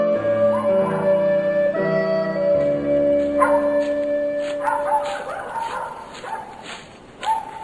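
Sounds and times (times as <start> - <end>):
dog barking: 0.2 - 1.6, 3.3 - 7.6
sustained musical tones: 0.2 - 5.4.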